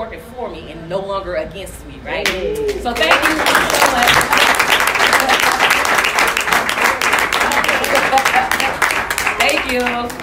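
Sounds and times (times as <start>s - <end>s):
speech: 0.4s - 4.4s, 9.7s - 10.2s
crowd applauding: 2.6s - 10.2s.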